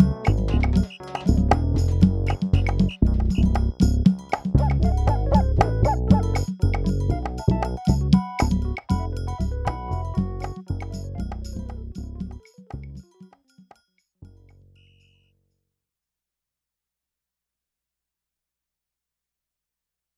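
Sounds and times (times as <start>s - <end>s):
Kontakt Latin drum machine based on the Yamaha RX21L: 0.0s - 13.5s.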